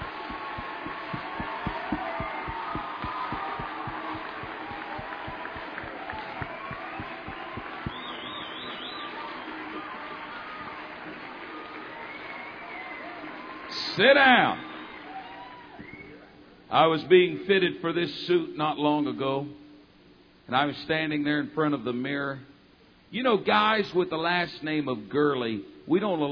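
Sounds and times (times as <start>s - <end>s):
congregation clapping hands in praise during a church service: 0.0s - 13.6s
crowd noise: 0.0s - 13.8s
speech: 14.0s - 14.6s, 16.7s - 19.6s, 20.5s - 22.5s, 23.1s - 26.3s.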